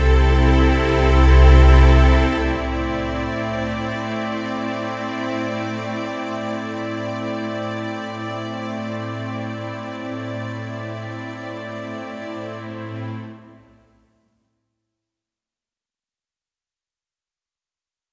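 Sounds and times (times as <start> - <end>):
dramatic music cue: 0.0 - 6.4.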